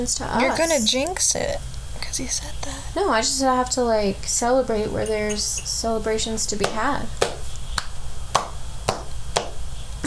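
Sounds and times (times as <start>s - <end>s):
speech: 0.0s - 7.3s
low hum: 0.0s - 10.0s
sharp hand claps: 6.6s - 9.6s.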